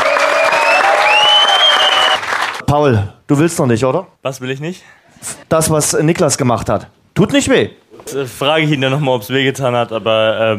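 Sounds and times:
audience applause: 0:00.0 - 0:02.6
speech: 0:02.7 - 0:10.5.

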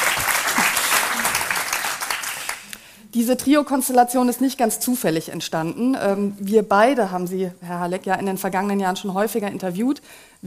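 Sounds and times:
audience applause: 0:00.0 - 0:02.7
speech: 0:03.1 - 0:10.4.

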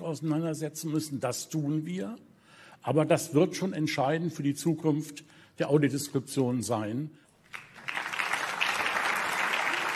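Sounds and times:
speech: 0:00.1 - 0:07.6
audience applause: 0:07.5 - 0:09.9.

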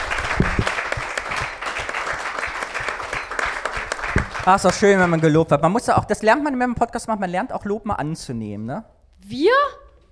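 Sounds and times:
audience applause: 0:00.0 - 0:05.4
speech: 0:04.5 - 0:09.8.

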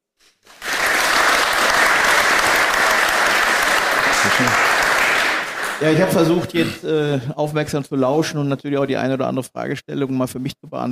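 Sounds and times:
audience applause: 0:00.4 - 0:06.4
speech: 0:05.8 - 0:10.9.

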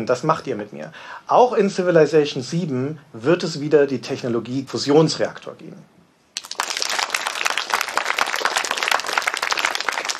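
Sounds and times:
speech: 0:00.0 - 0:05.9
friendly audience applause: 0:06.4 - 0:10.1.

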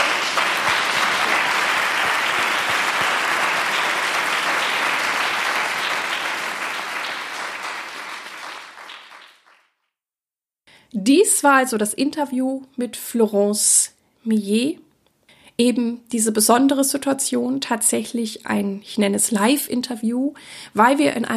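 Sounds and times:
audience applause in concert hall: 0:00.0 - 0:09.6
speech: 0:11.1 - 0:14.8, 0:15.6 - 0:21.3.

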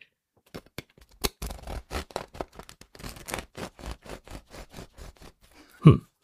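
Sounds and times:
knife sawing through a crusty bread roll: 0:01.4 - 0:05.7.

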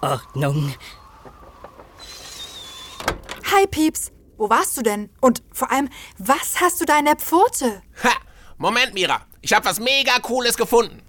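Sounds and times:
speech: 0:00.0 - 0:01.0, 0:03.5 - 0:11.0
window sliding shut: 0:00.9 - 0:03.4.

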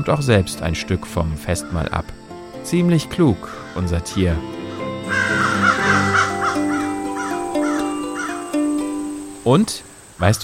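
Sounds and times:
speech: 0:00.0 - 0:05.4, 0:09.5 - 0:10.4
crow cawing: 0:03.5 - 0:03.9, 0:04.6 - 0:08.6.

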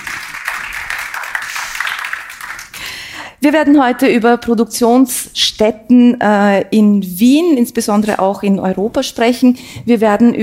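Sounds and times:
audience applause: 0:00.0 - 0:02.9
speech: 0:03.4 - 0:10.4.

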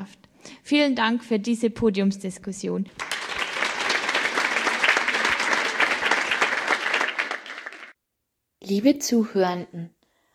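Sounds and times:
speech: 0:00.0 - 0:03.1, 0:08.7 - 0:10.0
audience applause after panel discussion: 0:03.0 - 0:08.0.

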